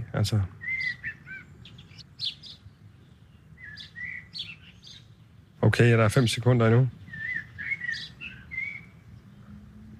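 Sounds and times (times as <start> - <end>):
swallow twittering: 0.0 - 2.7, 3.3 - 5.1, 6.1 - 9.9
starling calling: 0.0 - 5.4, 6.1 - 9.9
blackbird singing: 0.0 - 9.9
sparrow chirping: 0.0 - 9.9
speech: 0.2 - 1.0, 5.8 - 7.0.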